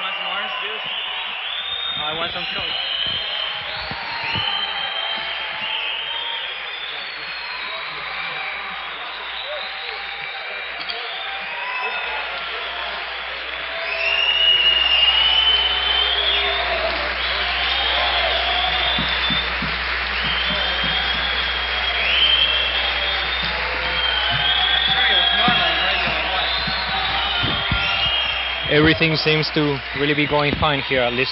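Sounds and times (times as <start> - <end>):
concert crowd applauding for an encore: 0.0 - 31.3
high whistles: 0.0 - 31.3
speech: 2.1 - 3.3, 28.8 - 31.3.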